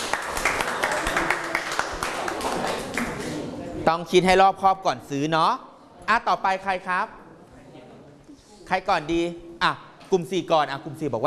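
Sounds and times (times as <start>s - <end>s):
group clapping: 0.0s - 3.6s
speech: 3.9s - 7.2s, 8.7s - 11.2s.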